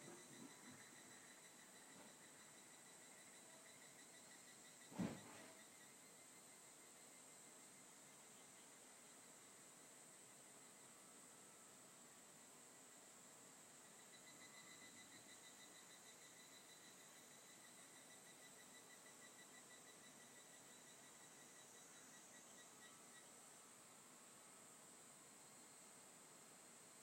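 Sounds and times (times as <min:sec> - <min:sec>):
evening cicada pulsing trill: 0:00.0 - 0:08.5, 0:13.7 - 0:23.6
high insect hiss: 0:00.0 - 0:27.0.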